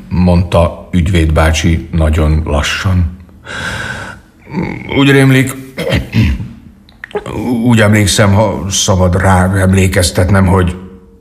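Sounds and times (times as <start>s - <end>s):
speech: 0.1s - 6.4s, 7.1s - 10.8s
coughing: 5.7s - 7.6s
throat clearing: 5.8s - 7.4s.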